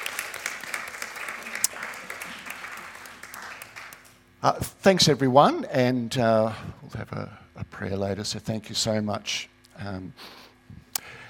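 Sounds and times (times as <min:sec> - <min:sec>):
audience applauding: 0:00.0 - 0:04.2
speech: 0:04.4 - 0:10.4.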